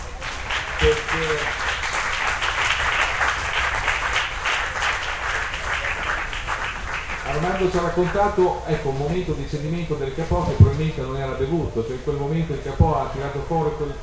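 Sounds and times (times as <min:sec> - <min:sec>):
audience applause at a talk: 0:00.0 - 0:08.8
speech: 0:00.8 - 0:01.7, 0:07.6 - 0:14.0.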